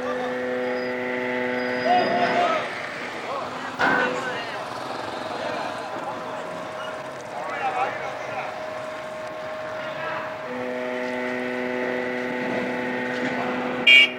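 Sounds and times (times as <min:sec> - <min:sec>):
ferry leaving port and blowing horn: 0:00.0 - 0:03.0, 0:07.7 - 0:14.1
cars and lorries loaded onto ferry at port in Greece: 0:00.0 - 0:14.1.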